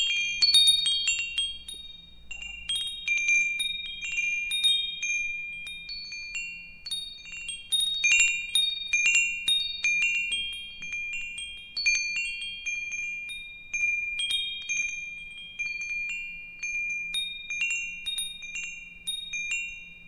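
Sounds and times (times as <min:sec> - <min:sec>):
metal wind chimes: 0:00.0 - 0:20.0.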